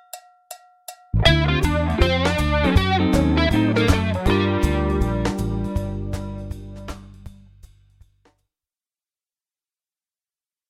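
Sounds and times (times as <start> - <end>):
jazz rock music: 1.2 - 7.7.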